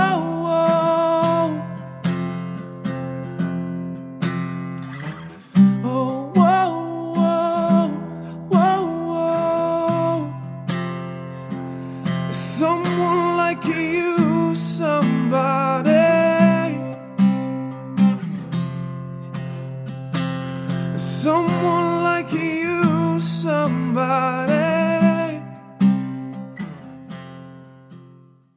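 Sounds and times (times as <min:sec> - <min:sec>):
vocalist singing: 0:00.0 - 0:02.5, 0:05.6 - 0:18.2, 0:20.9 - 0:25.8
guitar: 0:00.0 - 0:28.5.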